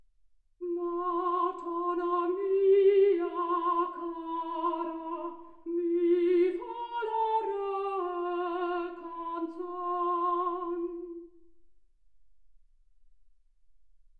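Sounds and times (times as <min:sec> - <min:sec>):
soprano singing: 0:00.6 - 0:11.4.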